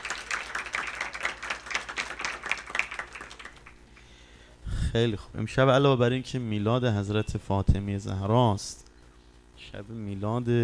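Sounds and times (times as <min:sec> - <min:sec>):
audience clapping at a religious celebration of the birth of Fatima Zahra: 0:00.0 - 0:04.1
speech: 0:04.9 - 0:08.9, 0:09.6 - 0:10.6.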